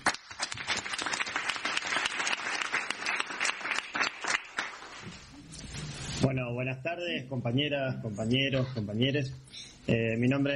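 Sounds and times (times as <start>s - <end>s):
audience applause: 0.0s - 5.1s
speech: 6.2s - 10.5s.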